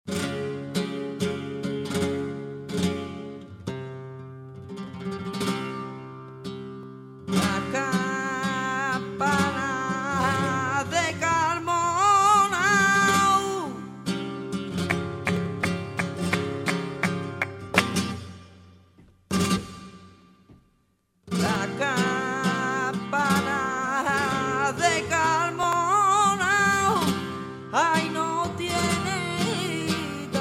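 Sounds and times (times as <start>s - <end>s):
solo flamenco tientos compas: 0.1s - 30.3s.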